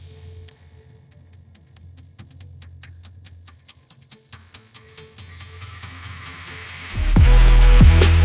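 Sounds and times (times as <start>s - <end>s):
EDM trap music at 140 bpm: 3.6s - 8.2s.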